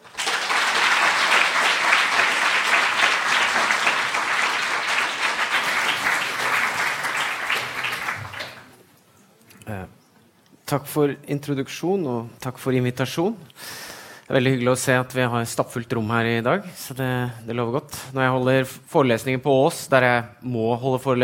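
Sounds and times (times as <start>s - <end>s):
audience applause: 0.0s - 8.8s
speech: 10.7s - 13.6s, 14.3s - 21.2s.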